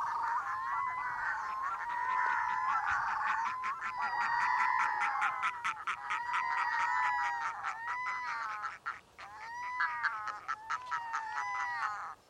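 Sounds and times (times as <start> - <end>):
red-throated loon in Iceland: 0.0 - 12.2.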